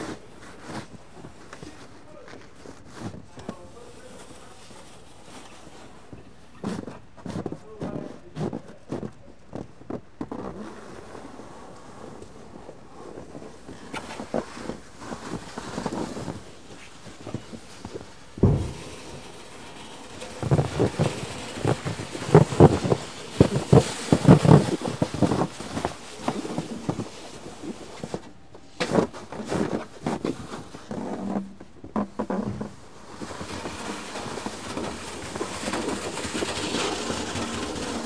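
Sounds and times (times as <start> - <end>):
snow being cleared, scraping: 0.0 - 9.1, 9.9 - 38.0
heavy thump: 18.4 - 23.7.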